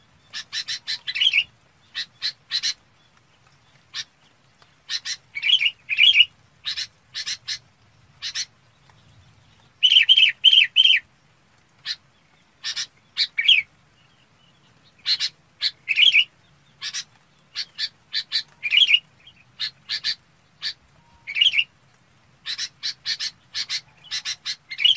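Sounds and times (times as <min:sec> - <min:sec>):
red-whiskered bulbul chirping calls: 0:00.0 - 0:11.1, 0:11.8 - 0:21.7, 0:22.4 - 0:24.9.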